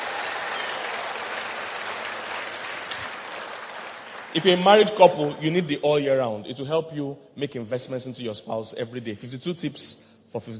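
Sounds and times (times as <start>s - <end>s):
audience clapping: 0.0s - 5.6s
speech: 4.3s - 10.5s.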